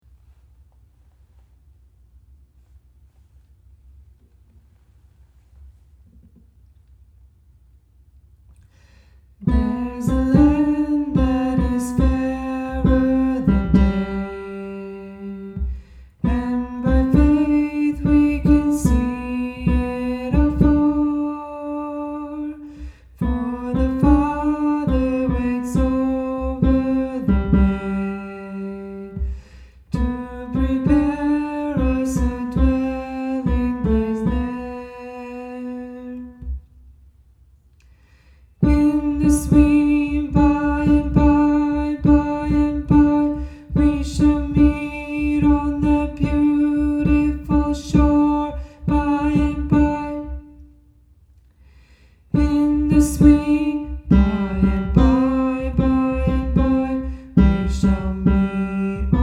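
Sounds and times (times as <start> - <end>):
tenor singing: 9.4 - 22.6, 23.2 - 36.6, 38.6 - 50.6, 52.3 - 59.2.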